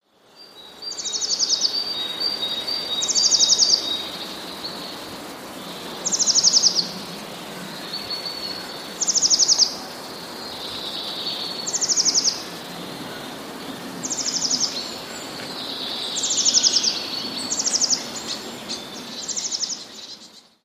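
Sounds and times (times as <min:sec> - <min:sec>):
background hiss: 0:00.0 - 0:20.6
Eurasian blue tit song: 0:00.1 - 0:20.6.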